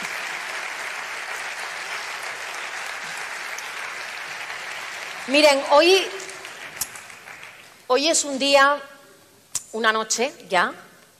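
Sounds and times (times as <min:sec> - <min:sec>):
audience applause: 0:00.0 - 0:07.8
speech: 0:05.3 - 0:06.2, 0:07.9 - 0:08.9, 0:09.7 - 0:10.8.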